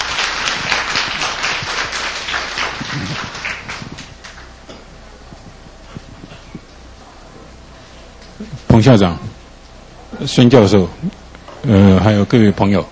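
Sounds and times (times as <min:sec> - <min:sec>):
room full of people clapping: 0:00.0 - 0:04.6
speech: 0:08.8 - 0:09.3, 0:10.2 - 0:12.9.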